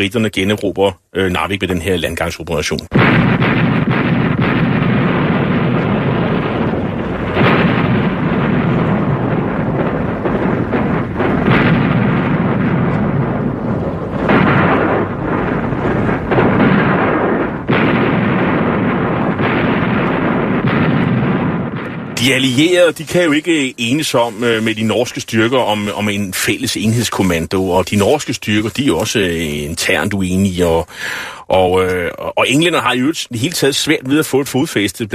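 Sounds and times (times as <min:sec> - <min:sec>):
speech: 0:00.0 - 0:04.0, 0:22.4 - 0:35.1
artillery duel between British vessels and German artillery: 0:02.9 - 0:25.8.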